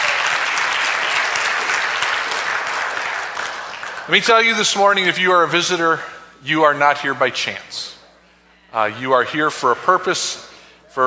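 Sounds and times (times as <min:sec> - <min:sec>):
crowd applauding for visitors: 0:00.0 - 0:04.8
speech: 0:04.1 - 0:07.9, 0:08.7 - 0:11.0.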